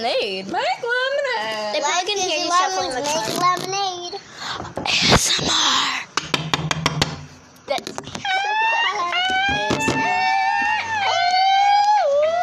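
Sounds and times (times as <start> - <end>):
speech: 0.0 - 1.0, 1.8 - 6.0
sharp taps and knocks: 6.2 - 8.2
several voices imitating a police car siren: 8.2 - 12.4.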